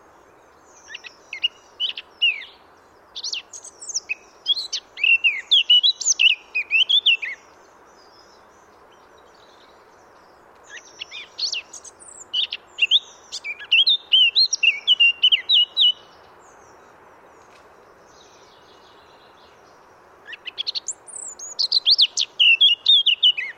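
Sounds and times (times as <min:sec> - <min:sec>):
Eurasian blackcap singing: 0:03.2 - 0:07.4, 0:10.7 - 0:16.1, 0:20.3 - 0:23.5.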